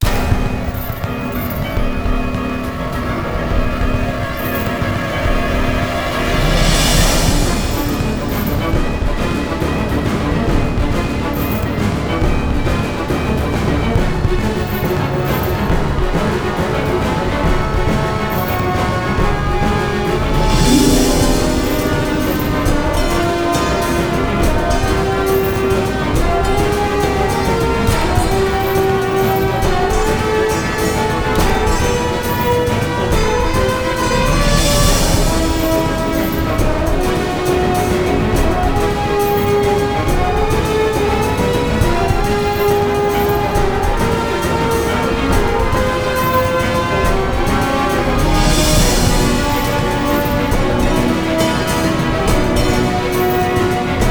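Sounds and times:
high-speed chase: 0.0s - 54.0s.

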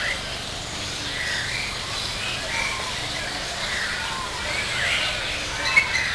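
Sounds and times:
forest ambience: 0.0s - 6.1s.

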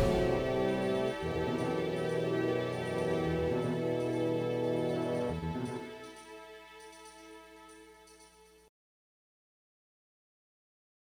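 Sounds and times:
slow music: 0.0s - 8.6s.

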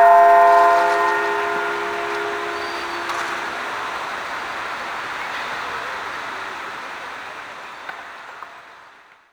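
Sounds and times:
bells ringing: 0.0s - 5.2s.

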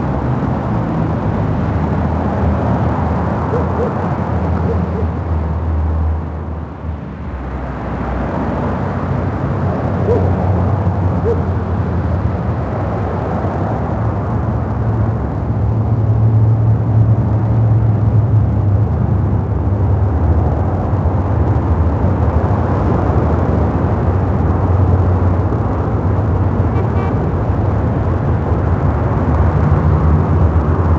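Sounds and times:
city ambience noise: 0.0s - 30.9s.

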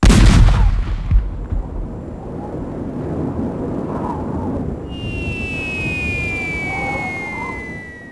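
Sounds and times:
cannonball: 0.0s - 1.7s.

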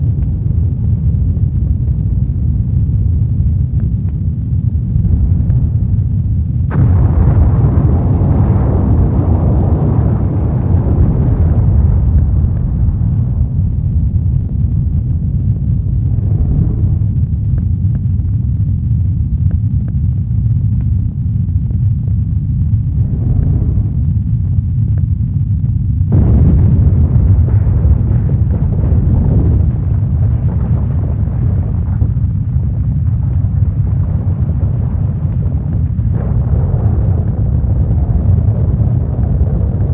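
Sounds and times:
rumbling flames: 0.0s - 39.9s
explosions: 4.6s - 18.5s, 22.5s - 39.9s.

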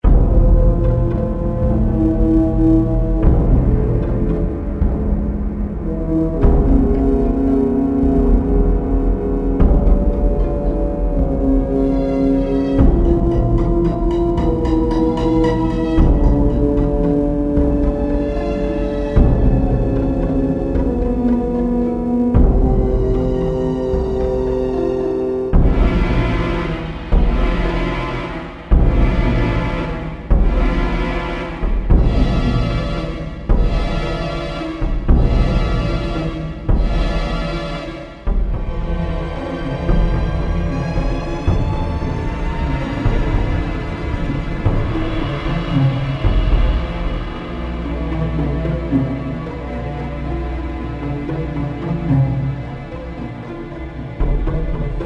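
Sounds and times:
slow music: 0.0s - 55.0s.

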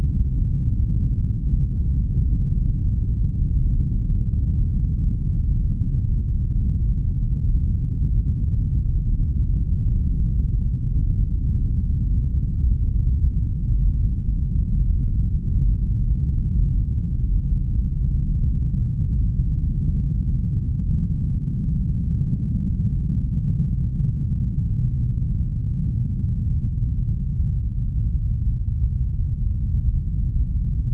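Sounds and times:
low end rumble: 0.0s - 30.9s.

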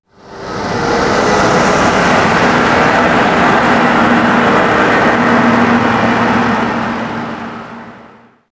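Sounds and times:
van passing by garage: 0.2s - 8.4s.

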